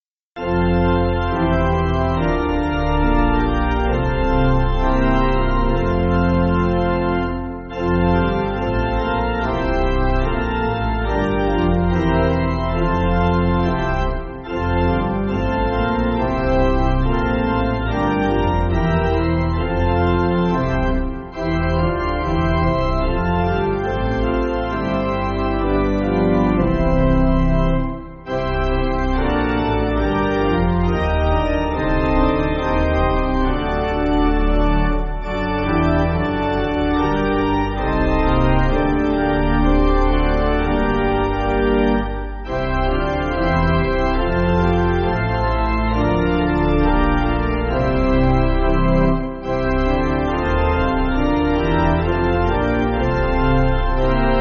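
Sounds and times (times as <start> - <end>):
pipe organ backing for churches: 0.4 - 54.3.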